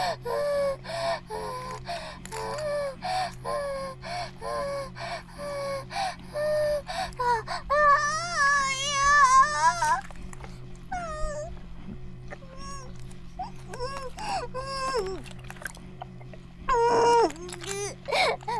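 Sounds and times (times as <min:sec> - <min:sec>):
vibrator buzzing: 0:00.2 - 0:18.5.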